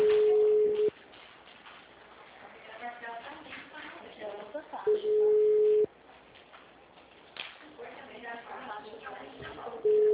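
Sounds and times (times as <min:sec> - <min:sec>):
unanswered telephone call ringback tone: 0:00.0 - 0:00.9, 0:04.9 - 0:05.9, 0:09.8 - 0:10.1.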